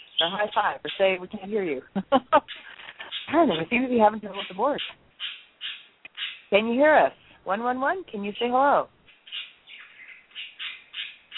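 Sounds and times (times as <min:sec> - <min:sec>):
pet parakeet chirping and squawking: 0:00.0 - 0:01.6, 0:02.4 - 0:06.6, 0:08.3 - 0:11.3
speech: 0:00.2 - 0:05.0, 0:06.5 - 0:09.0.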